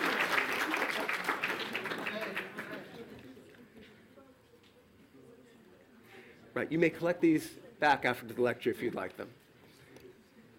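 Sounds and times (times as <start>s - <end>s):
audience applause: 0.0s - 3.1s
speech: 6.6s - 9.4s.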